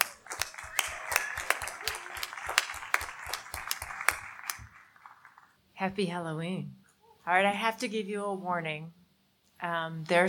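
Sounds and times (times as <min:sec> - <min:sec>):
audience applause: 0:00.0 - 0:05.6
speech: 0:05.8 - 0:09.0, 0:09.6 - 0:10.2.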